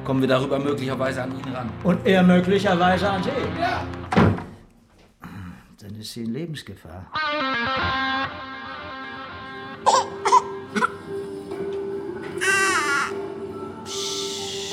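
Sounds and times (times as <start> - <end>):
speech: 0.0 - 4.4, 5.8 - 8.4
baby crying: 9.8 - 11.0, 12.4 - 13.3.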